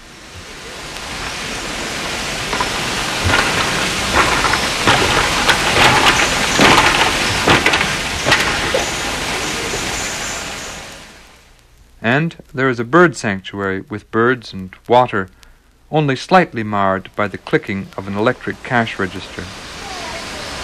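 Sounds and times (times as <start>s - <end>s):
footsteps on a bamboo bridge: 0.0s - 9.9s
speech: 12.1s - 19.6s.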